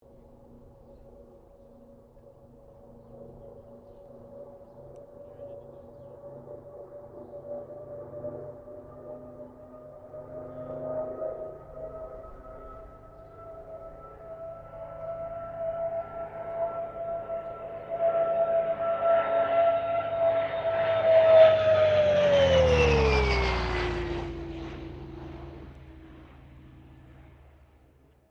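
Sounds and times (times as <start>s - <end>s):
CA-13 Boomerang aircraft passing: 0.1s - 28.2s.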